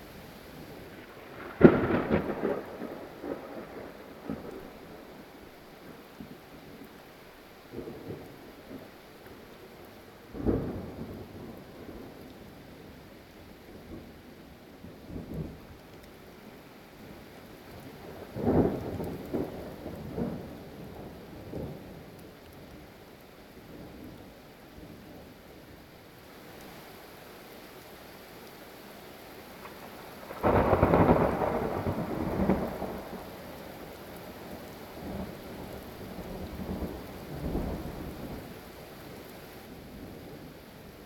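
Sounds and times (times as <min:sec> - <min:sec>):
thunderstorm: 0:00.6 - 0:05.2, 0:10.3 - 0:12.2, 0:17.7 - 0:21.9, 0:29.6 - 0:38.5.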